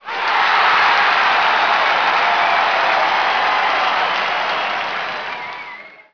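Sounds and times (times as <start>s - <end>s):
crowd clapping in a stadium: 0.0s - 6.1s.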